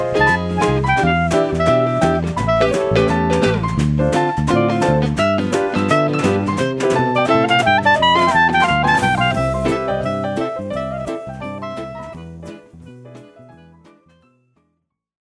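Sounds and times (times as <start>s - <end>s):
saxophone: 0.1s - 3.8s, 4.5s - 12.4s.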